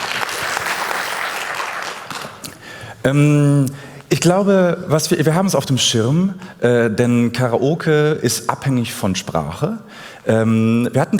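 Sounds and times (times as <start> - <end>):
audience applause: 0.0 - 2.6
speech: 3.0 - 11.1.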